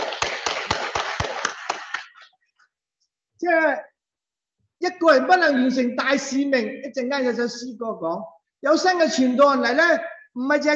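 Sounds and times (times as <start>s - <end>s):
audience clapping: 0.0s - 2.4s
speech: 3.4s - 3.9s, 4.8s - 10.7s.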